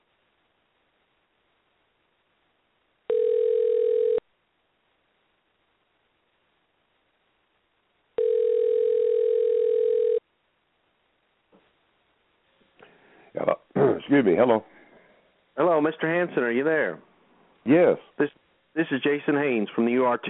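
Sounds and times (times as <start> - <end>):
telephone tones while dialing a number: 3.1 - 4.2, 8.2 - 10.2
speech: 14.1 - 14.8, 15.6 - 20.2.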